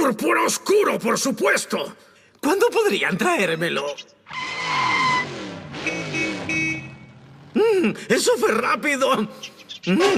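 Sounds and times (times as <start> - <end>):
speech: 0.0 - 4.8, 7.6 - 10.1
race car tires squealing and skidding: 4.3 - 7.5
dark purple race car turbojet engine roaring: 4.3 - 8.1.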